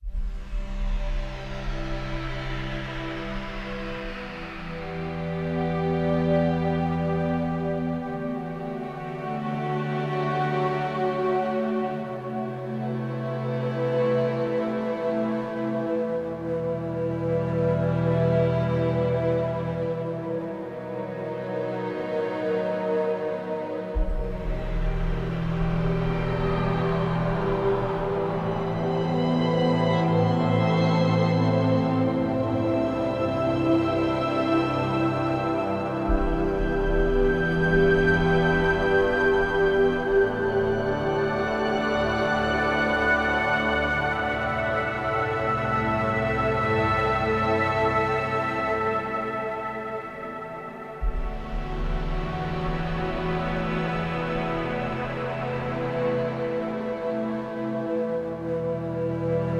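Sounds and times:
loss ambient music: 0.0 - 59.5.

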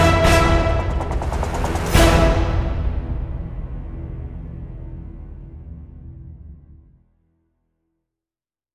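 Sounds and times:
epic building action music without choir: 0.0 - 6.8.

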